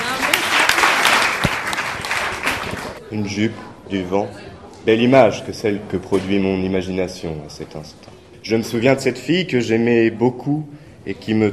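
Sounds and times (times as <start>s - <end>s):
audience applause: 0.0s - 3.0s
speech: 3.1s - 11.5s.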